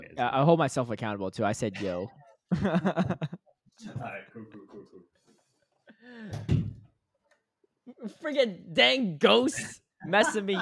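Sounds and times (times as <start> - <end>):
speech: 0.2 - 5.1, 7.9 - 10.6
laughter: 2.5 - 3.4
door thud: 6.3 - 6.9.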